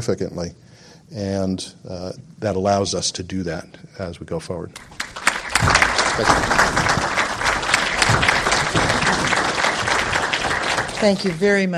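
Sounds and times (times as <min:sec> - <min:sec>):
speech: 0:00.0 - 0:07.0, 0:11.0 - 0:11.7
audience applause after a talk: 0:04.8 - 0:11.7.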